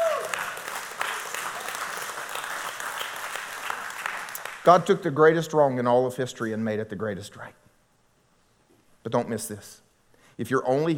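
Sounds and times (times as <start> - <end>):
audience applause: 0.0 - 4.7
speech: 4.7 - 7.6, 9.0 - 9.8, 10.4 - 10.9.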